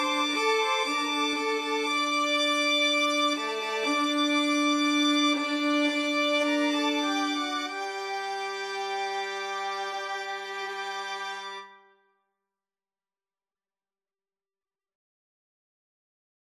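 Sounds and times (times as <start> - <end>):
violin ensemble: 0.0 - 11.8.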